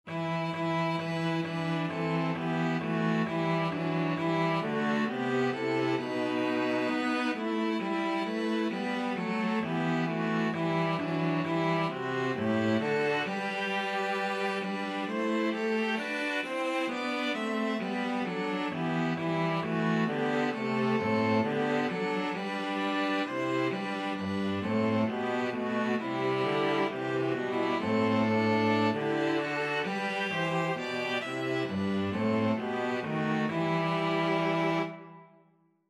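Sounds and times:
string trio playing: 0.1s - 35.2s.

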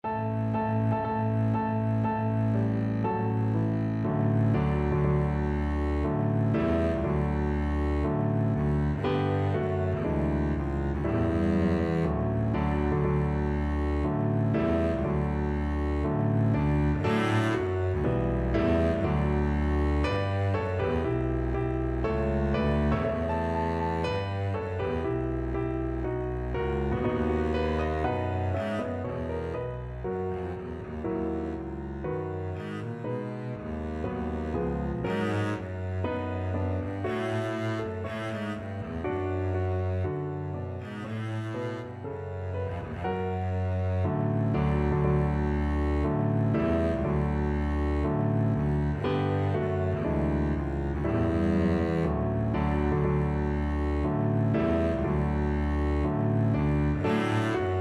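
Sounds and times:
double bass playing a wedding march: 0.0s - 57.7s.

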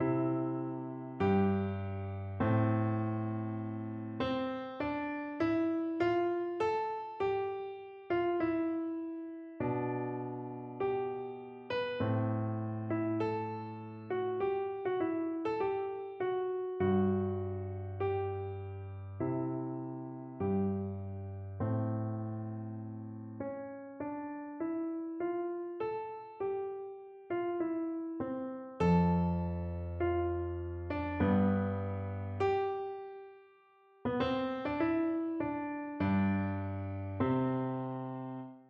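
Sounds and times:
piano piece: 0.0s - 38.6s.

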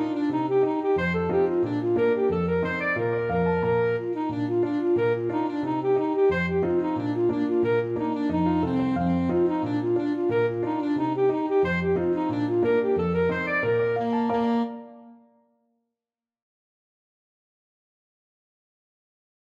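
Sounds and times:
alto saxophone playing a hornpipe: 0.0s - 15.4s.

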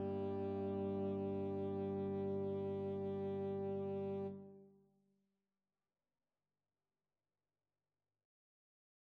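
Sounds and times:
tenor saxophone: 0.0s - 4.6s.

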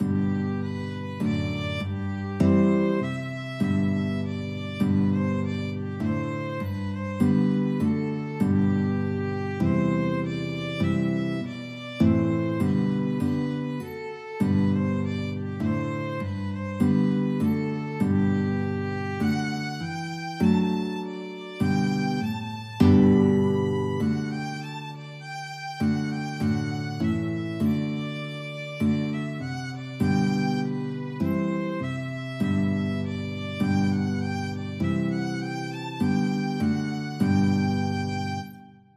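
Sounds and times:
violin and guitar duet: 0.0s - 38.9s.

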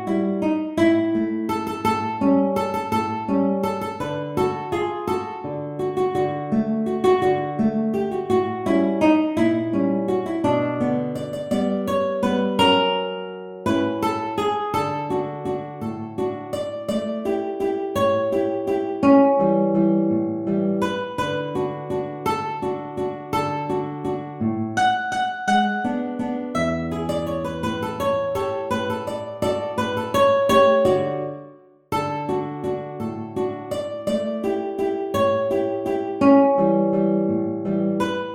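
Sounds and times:
guitar playing a waltz: 0.0s - 38.3s.

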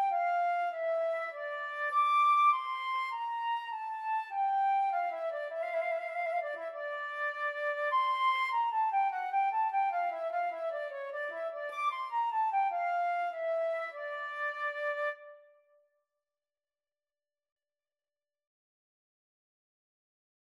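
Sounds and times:
minuet played as a flute and clarinet duet: 0.0s - 15.4s.

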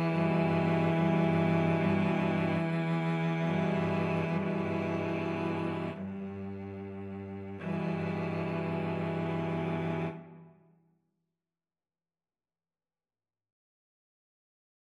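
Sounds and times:
cello quartet: 0.0s - 10.6s.

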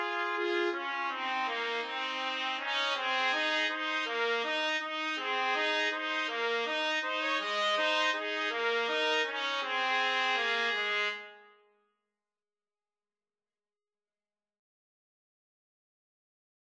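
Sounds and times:
trumpet duet: 0.0s - 11.4s.

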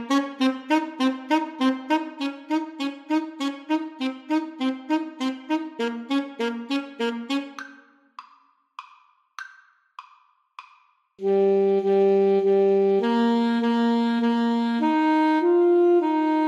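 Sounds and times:
alto saxophone duet: 0.0s - 7.8s, 11.2s - 16.4s.

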